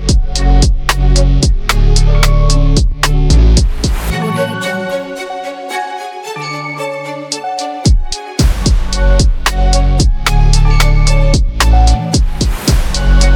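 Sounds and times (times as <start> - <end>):
epic beat: 0.0 - 4.5, 7.3 - 13.3.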